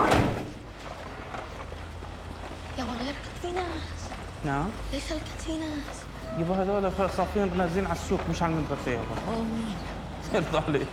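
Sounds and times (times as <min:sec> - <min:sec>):
door being shut: 0:00.0 - 0:00.6
speech: 0:03.6 - 0:10.9.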